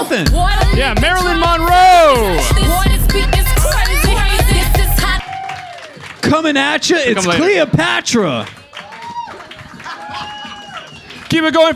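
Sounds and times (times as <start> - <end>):
crowd applause: 0.0 - 11.7
speech: 0.1 - 3.5, 6.2 - 8.6, 11.3 - 11.7
whoops and high shouts: 1.2 - 6.4, 8.7 - 11.2.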